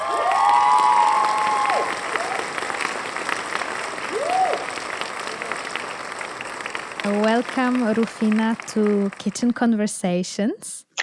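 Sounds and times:
audience clapping to welcome a guest: 0.0 - 9.8
speech: 7.0 - 11.0.

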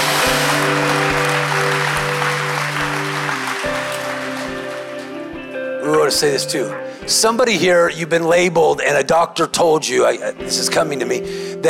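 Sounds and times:
audience clapping: 0.0 - 5.6
speech: 6.1 - 11.6.

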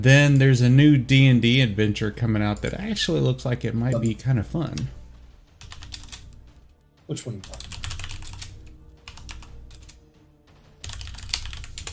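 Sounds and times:
speech: 0.0 - 5.0, 7.1 - 7.6
typing on a computer keyboard: 5.6 - 6.2, 7.4 - 9.9, 10.8 - 11.9.

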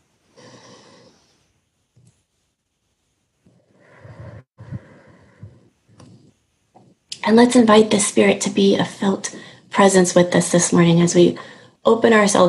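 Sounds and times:
deep breath inhaled and exhaled: 0.4 - 1.3, 3.5 - 6.3, 9.3 - 9.7, 11.4 - 11.8
speech: 7.2 - 12.4.

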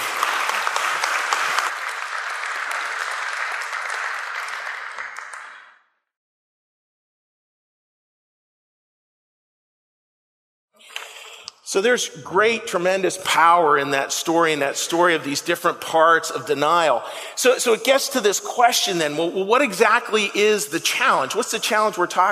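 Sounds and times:
crowd applause: 0.0 - 5.8
speech: 11.8 - 22.3.

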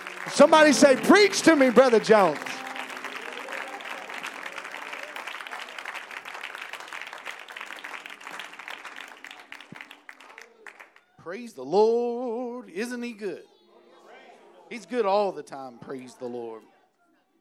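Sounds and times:
crowd clapping: 0.0 - 11.2
speech: 0.3 - 2.6, 11.4 - 13.5, 14.7 - 16.7.

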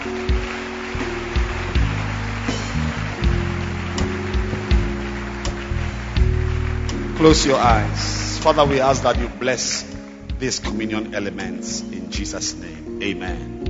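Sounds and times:
audience applause: 0.0 - 10.8
sustained keyboard chords: 0.0 - 13.6
speech: 7.2 - 13.6.

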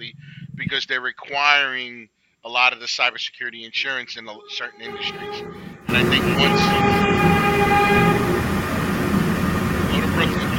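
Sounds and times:
speech: 0.7 - 8.2
high whining tones of a train: 4.3 - 10.5
train rolling along the line above an office: 4.4 - 10.5.

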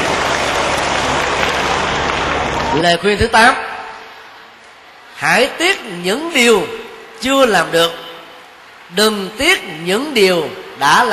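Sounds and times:
audience applause: 0.0 - 2.8
speech: 2.8 - 3.6, 5.2 - 8.0, 8.9 - 11.1.

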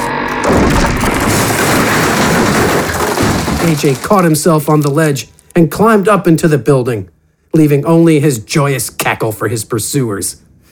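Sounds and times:
bridge crashing down into the street: 0.4 - 4.7
speech: 3.6 - 10.7.

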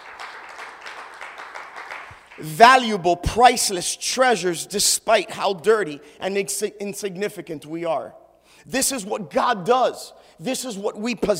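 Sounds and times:
audience clapping: 0.0 - 2.8
speech: 2.4 - 11.3.

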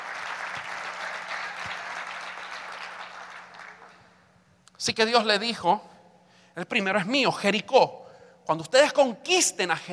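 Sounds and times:
audience applauding: 0.0 - 4.1
speech: 4.8 - 5.9, 6.6 - 9.9.

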